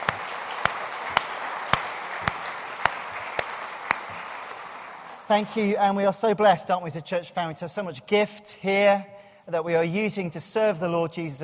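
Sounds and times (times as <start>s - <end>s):
church audience clapping: 0.0s - 5.8s
speech: 5.3s - 11.4s.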